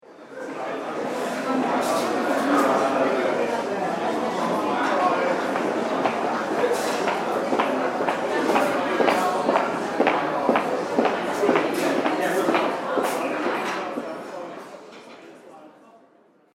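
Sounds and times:
hotel foyer ambience: 0.1s - 16.5s
footsteps in a hotel foyer: 5.5s - 14.2s.

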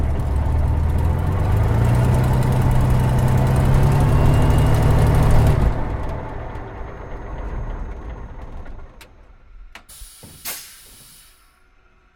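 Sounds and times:
Supermarine Spitfire Mk-VIII aircraft engine shutting down, interior: 0.0s - 12.0s.

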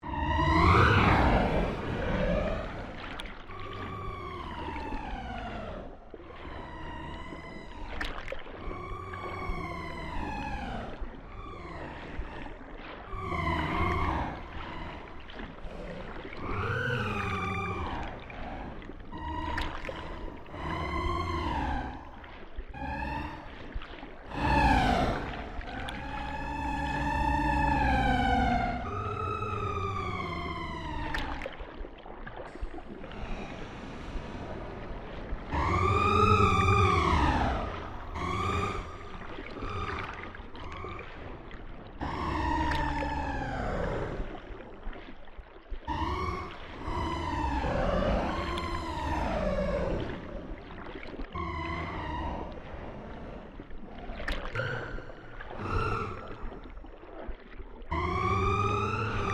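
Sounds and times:
cyber whale song: 0.0s - 59.3s.

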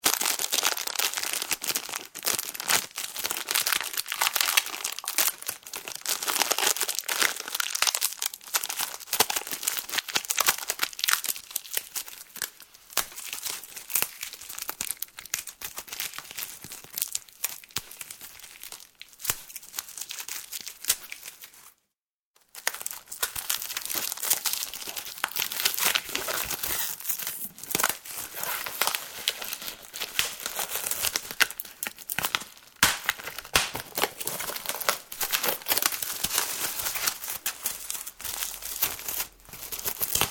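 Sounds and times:
polythene plastic wrap stretching and unwrapping: 0.0s - 21.8s, 22.4s - 40.2s.

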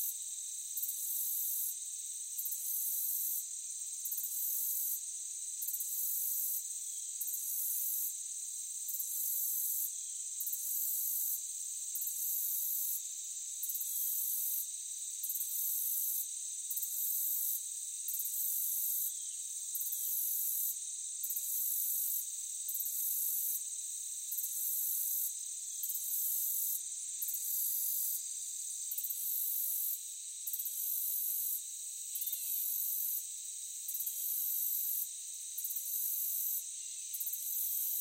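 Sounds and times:
meadow crickets chirping: 0.0s - 38.0s.

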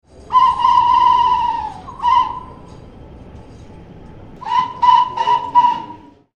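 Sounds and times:
train station platform guard whistle: 0.3s - 2.7s, 4.4s - 6.2s.

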